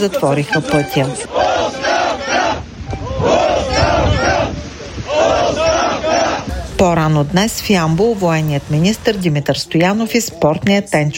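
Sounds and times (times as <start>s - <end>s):
speech: 0.0s - 1.8s, 6.8s - 11.1s
protesters chanting for resignation: 0.0s - 10.1s.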